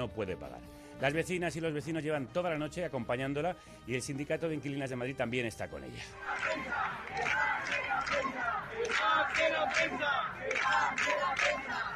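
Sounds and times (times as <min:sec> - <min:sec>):
speech: 0:00.0 - 0:11.9
crowd of protesters shouting chants: 0:06.2 - 0:11.9.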